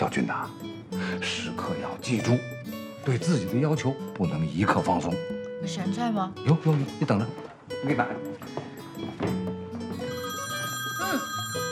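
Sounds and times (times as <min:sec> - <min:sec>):
speech: 0:00.0 - 0:08.7
mobile phone ringing with electronic ringtone: 0:09.8 - 0:11.7.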